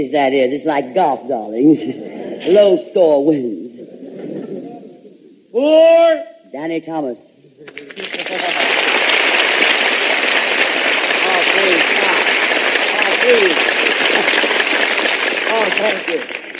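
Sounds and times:
speech: 0:00.0 - 0:03.6, 0:05.6 - 0:08.8, 0:13.3 - 0:14.8, 0:15.6 - 0:16.4
studio audience applause: 0:07.6 - 0:16.5.

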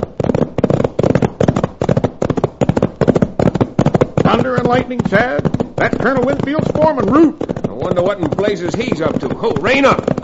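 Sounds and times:
gunshots: 0:00.0 - 0:10.2
speech: 0:04.5 - 0:10.2.

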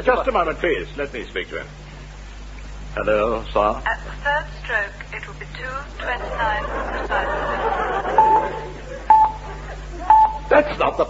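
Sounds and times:
speech: 0:00.0 - 0:01.8, 0:02.9 - 0:08.6, 0:10.5 - 0:11.0
low steady hum: 0:00.0 - 0:11.0
laughter: 0:06.0 - 0:11.0
telephone being dialled touch-tone beeps: 0:08.2 - 0:09.5, 0:10.1 - 0:10.5.

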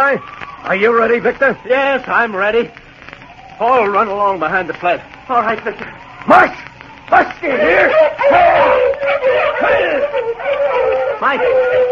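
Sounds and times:
speech: 0:00.1 - 0:02.8, 0:03.6 - 0:11.9
pack of sled dogs barking and yipping excitedly: 0:07.6 - 0:11.9.

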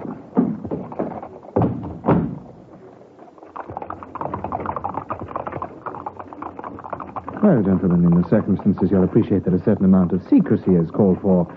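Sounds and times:
four-wheeler cab wheels rumbling: 0:00.0 - 0:11.5
horse hooves clattering, horse-drawn four-wheeler cab: 0:00.0 - 0:11.5
carriage door shutting with heavy thuds: 0:01.6 - 0:02.5
speech: 0:07.4 - 0:11.5.

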